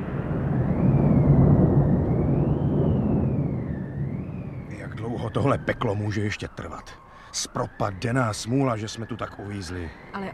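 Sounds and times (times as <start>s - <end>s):
raging windstorm: 0.0s - 10.3s
speech: 5.3s - 10.3s.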